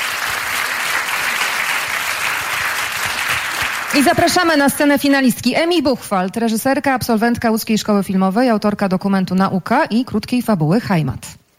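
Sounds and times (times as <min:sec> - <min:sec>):
large audience applauding: 0:00.0 - 0:04.7
speech: 0:03.9 - 0:11.4.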